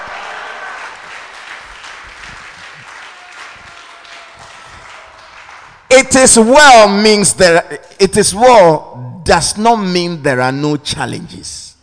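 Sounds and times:
audience clapping hands: 0:00.0 - 0:06.2
speech: 0:06.0 - 0:11.6.

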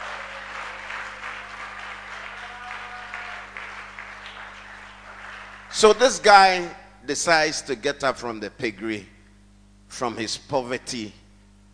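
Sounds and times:
audience clapping and shouting: 0:00.0 - 0:06.1
speech: 0:05.8 - 0:09.1, 0:09.9 - 0:11.2.

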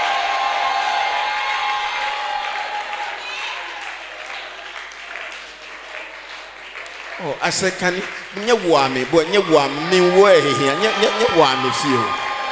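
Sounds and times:
audience cheering and shouting: 0:00.0 - 0:04.2, 0:08.4 - 0:12.5
speech: 0:07.2 - 0:12.2.

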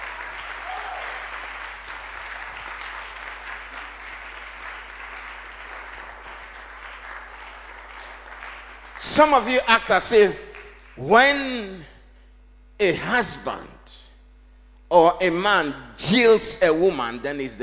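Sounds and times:
crowd clapping: 0:00.0 - 0:11.4
speech: 0:09.1 - 0:11.9, 0:12.8 - 0:13.7, 0:14.9 - 0:17.6.

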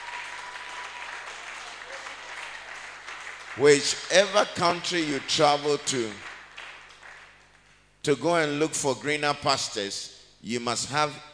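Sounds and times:
audience clapping: 0:00.0 - 0:07.8
speech: 0:03.6 - 0:06.3, 0:08.0 - 0:11.3.

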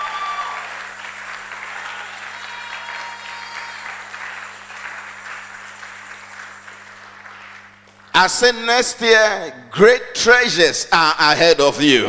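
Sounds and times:
audience clapping: 0:00.0 - 0:08.7
speech: 0:08.2 - 0:12.0.

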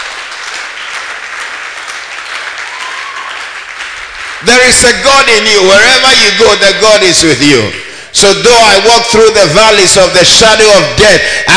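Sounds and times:
crowd clapping: 0:00.0 - 0:05.8
speech: 0:04.4 - 0:11.5.

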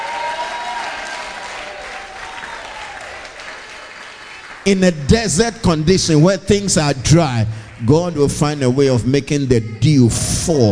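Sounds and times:
shouts and cheers: 0:00.0 - 0:03.4
crowd clapping: 0:00.0 - 0:05.9, 0:06.5 - 0:09.1
speech: 0:04.7 - 0:10.7.

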